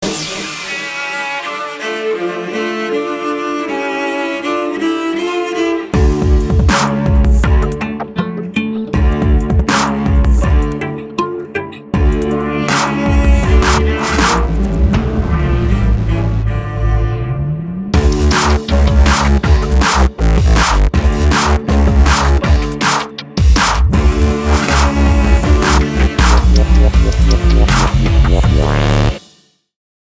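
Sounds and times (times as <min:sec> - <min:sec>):
dirty strings: 0:00.0 - 0:29.2.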